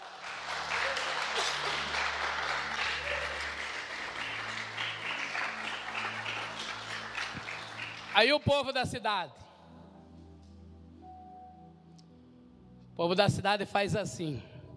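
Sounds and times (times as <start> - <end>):
audience applause: 0.0 - 8.3
speech: 8.2 - 9.4, 13.0 - 14.5.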